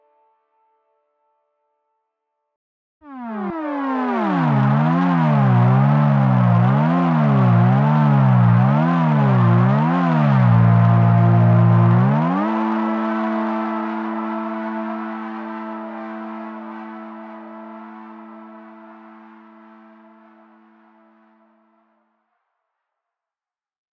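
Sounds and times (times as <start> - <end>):
wavetable MPE synth presets: 3.0 - 21.7.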